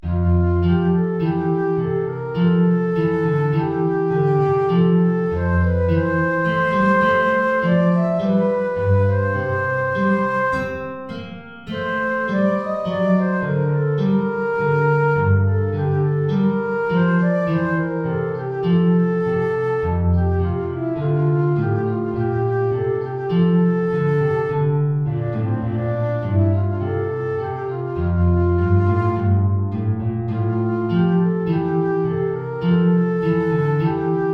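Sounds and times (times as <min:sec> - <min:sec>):
guitar: 0:00.0 - 0:34.3
transverse flute: 0:00.0 - 0:34.3.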